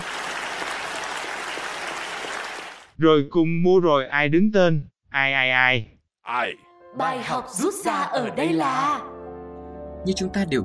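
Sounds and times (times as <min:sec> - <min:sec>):
applause sound effect: 0:00.0 - 0:03.0
speech: 0:03.0 - 0:09.2, 0:10.0 - 0:10.6.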